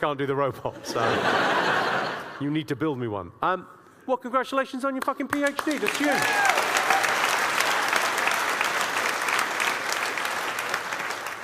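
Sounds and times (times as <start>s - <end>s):
speech: 0.0s - 6.6s
laughter: 0.7s - 2.5s
audience clapping: 5.0s - 11.4s.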